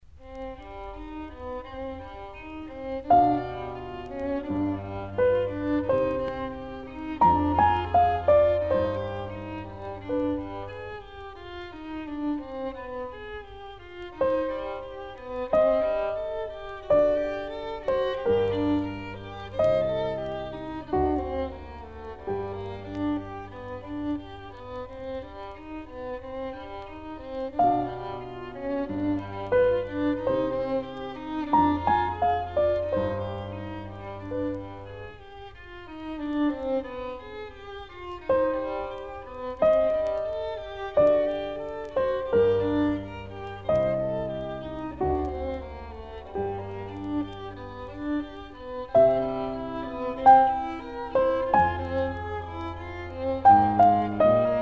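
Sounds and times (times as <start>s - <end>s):
violin sonata: 0.0s - 54.5s.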